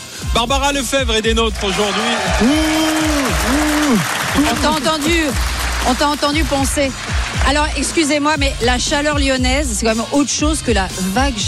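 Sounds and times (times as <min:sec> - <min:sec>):
speech: 0:00.4 - 0:11.4
studio audience applause: 0:01.4 - 0:08.6.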